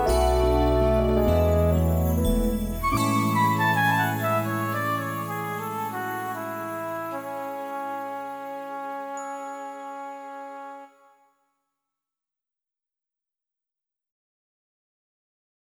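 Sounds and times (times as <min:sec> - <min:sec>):
backing music: 0:00.0 - 0:10.1.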